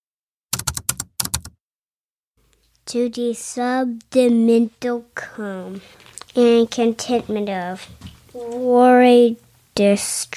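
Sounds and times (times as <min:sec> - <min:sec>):
typing on a computer keyboard: 0:00.5 - 0:01.6
speech: 0:02.9 - 0:10.3.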